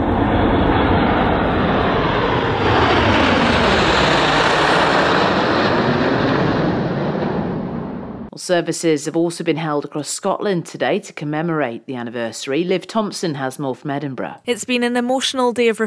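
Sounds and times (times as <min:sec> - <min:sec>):
military aircraft flypast overhead: 0:00.0 - 0:08.2
speech: 0:08.5 - 0:15.8.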